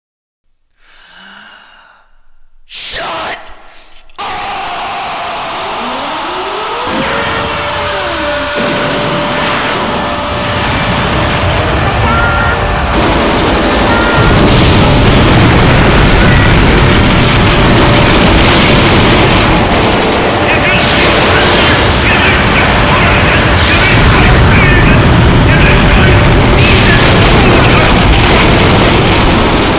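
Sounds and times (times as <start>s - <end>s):
boom: 4.2s - 29.7s.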